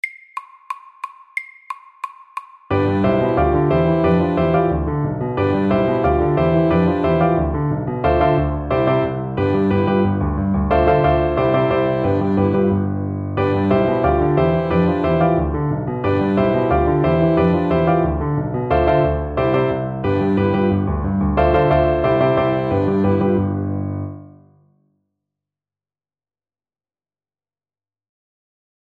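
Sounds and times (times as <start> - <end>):
honky tonk music: 2.7 - 24.0.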